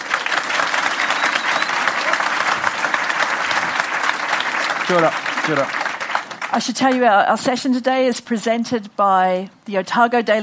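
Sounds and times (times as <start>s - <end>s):
audience applause at the Dunedin Writers and Readers Festival: 0.0s - 7.0s
speech: 4.9s - 5.8s, 6.5s - 10.4s.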